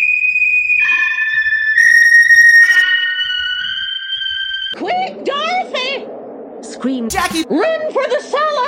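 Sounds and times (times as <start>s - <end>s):
sharp whistling: 0.0s - 4.8s
speech: 6.8s - 8.5s.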